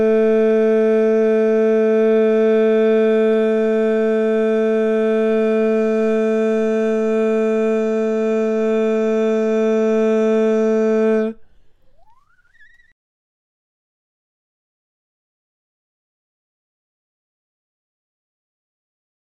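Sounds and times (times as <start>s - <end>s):
barbershop tags lead voice: 0.0s - 11.4s.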